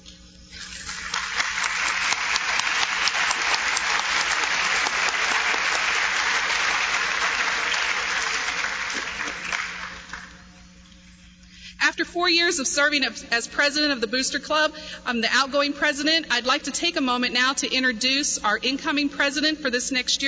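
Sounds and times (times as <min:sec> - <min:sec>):
audience applause: 0:00.6 - 0:10.4
speech: 0:12.2 - 0:20.2.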